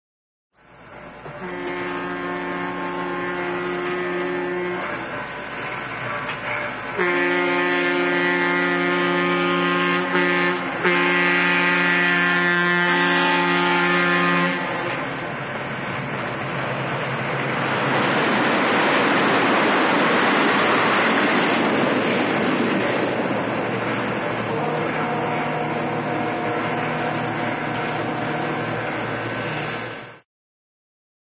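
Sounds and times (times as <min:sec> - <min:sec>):
cartoon diesel train constant running: 0:00.6 - 0:30.2
cartoon diesel train horn: 0:01.2 - 0:05.4, 0:06.1 - 0:15.3, 0:24.2 - 0:29.1.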